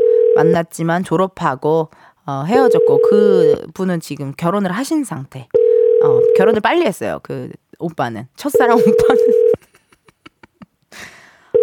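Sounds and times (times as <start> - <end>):
steady electronic telephone call tone: 0.0 - 0.5, 5.6 - 6.6, 8.6 - 9.6
speech: 0.4 - 9.4.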